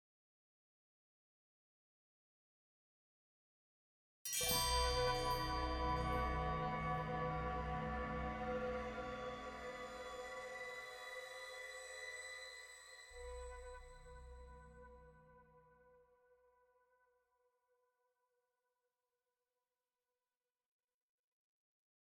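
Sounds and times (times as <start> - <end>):
spirit trial music stinger: 4.4 - 15.0.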